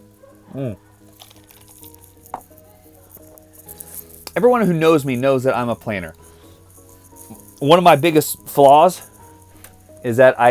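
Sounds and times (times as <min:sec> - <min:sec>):
person sipping a drink: 0:00.2 - 0:04.4, 0:06.1 - 0:07.6
speech: 0:00.5 - 0:00.9, 0:04.4 - 0:06.2, 0:07.6 - 0:09.1, 0:10.0 - 0:10.4.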